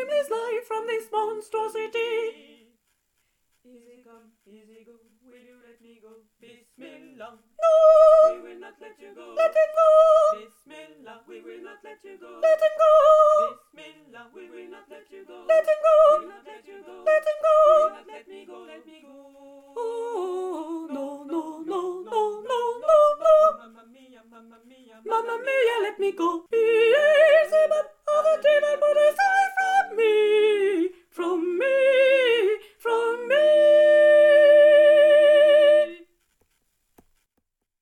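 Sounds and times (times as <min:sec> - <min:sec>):
soprano singing: 0:00.0 - 0:02.8, 0:03.6 - 0:36.1.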